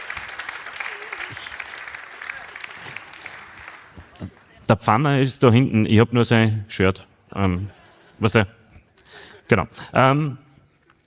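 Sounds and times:
live audience applause: 0.0s - 4.6s
speech: 4.2s - 8.6s, 9.5s - 10.4s.

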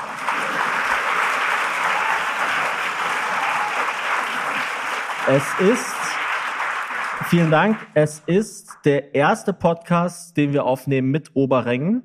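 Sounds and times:
audience applause: 0.0s - 8.2s
speech: 5.3s - 6.0s, 7.3s - 12.0s.

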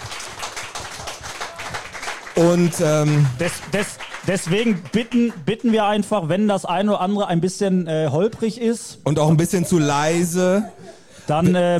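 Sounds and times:
audience applause for a performer at a live event: 0.0s - 6.2s
speech: 2.4s - 11.7s.

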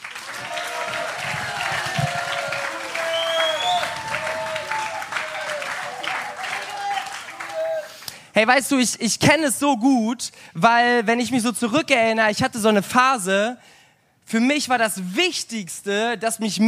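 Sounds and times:
audience applause: 0.0s - 8.0s
speech: 8.4s - 16.6s.

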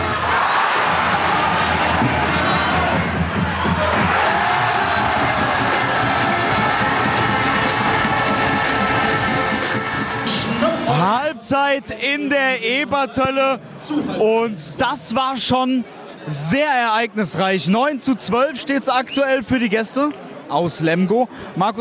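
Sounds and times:
handball arena crowd cheering after goal: 0.0s - 11.4s
speech: 11.8s - 21.7s.

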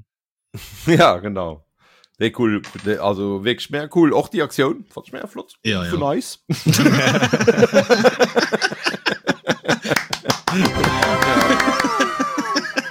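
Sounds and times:
speech: 0.5s - 1.6s, 2.2s - 8.8s
laughter: 6.5s - 12.9s
hand clapping: 9.8s - 12.5s.

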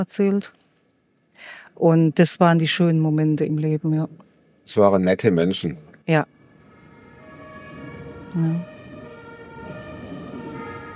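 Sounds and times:
speech: 0.0s - 0.6s, 1.4s - 6.4s, 8.4s - 8.7s
low rumble of traffic: 1.4s - 10.9s
emergency vehicle two-tone siren wailing: 6.1s - 10.9s.

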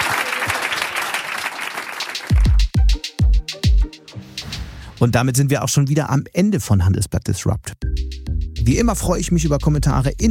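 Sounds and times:
applause: 0.0s - 2.7s
speech: 5.0s - 10.2s.

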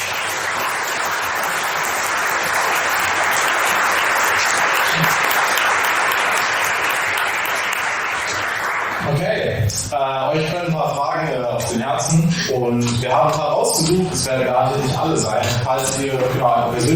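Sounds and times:
audience applause: 0.0s - 9.9s
speech: 10.1s - 16.9s.

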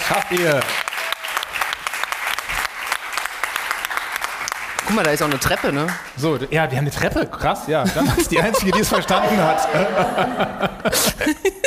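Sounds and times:
crowd applause: 0.0s - 6.2s, 8.6s - 10.9s
speech: 0.1s - 0.8s, 4.9s - 11.6s
laughter: 7.8s - 11.6s.

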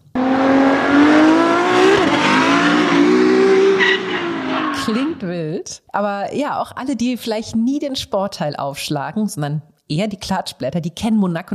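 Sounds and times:
Formula 1 race cars at full throttle: 0.0s - 5.2s
speech: 6.0s - 11.5s.

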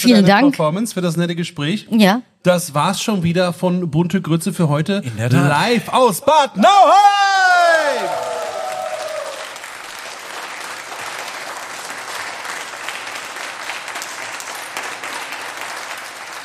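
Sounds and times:
speech: 0.0s - 8.2s
live audience applauding: 7.5s - 16.4s.

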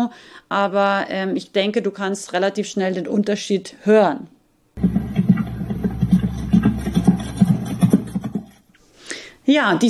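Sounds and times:
speech: 0.1s - 5.0s, 9.5s - 9.8s
horse galloping hoofbeats: 4.8s - 8.7s.

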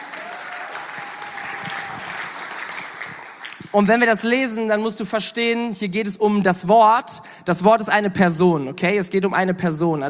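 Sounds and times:
audience applause: 0.0s - 3.8s
speech: 3.7s - 10.0s.

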